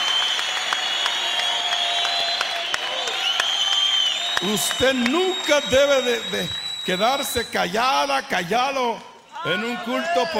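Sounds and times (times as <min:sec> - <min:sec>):
audience applauding: 0:00.0 - 0:07.5
speech: 0:04.4 - 0:10.3.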